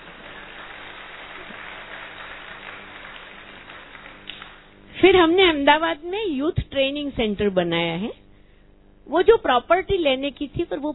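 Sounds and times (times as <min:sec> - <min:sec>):
audience clapping: 0:00.0 - 0:04.8
speech: 0:05.0 - 0:08.2, 0:09.1 - 0:10.9.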